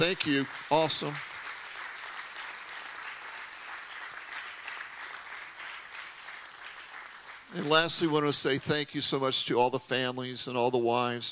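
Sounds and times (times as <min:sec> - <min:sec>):
speech: 0:00.0 - 0:01.3, 0:07.5 - 0:11.2
audience applause: 0:00.0 - 0:08.6.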